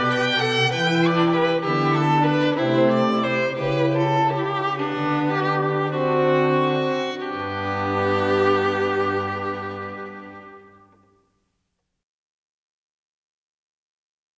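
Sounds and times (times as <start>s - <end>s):
festive string ensemble: 0.0s - 11.2s.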